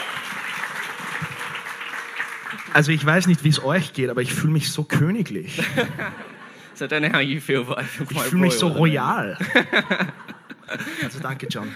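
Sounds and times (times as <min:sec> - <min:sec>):
audience applause for a British translator during a church sermon: 0:00.0 - 0:03.8
speech: 0:02.5 - 0:11.7
laughter: 0:05.4 - 0:11.7.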